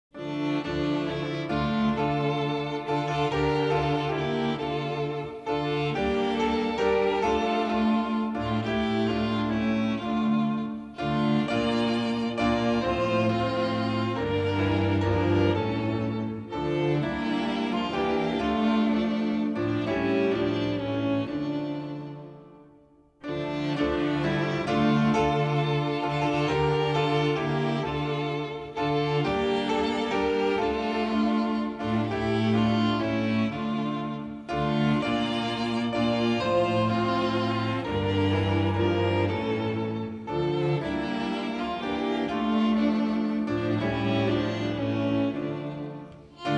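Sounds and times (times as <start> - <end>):
instrumental hymn: 0.0 - 46.5.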